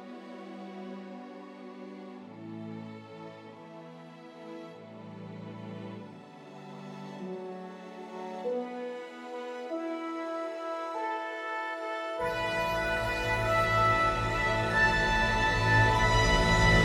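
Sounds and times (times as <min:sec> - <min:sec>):
fanfare: 0:10.4 - 0:16.8.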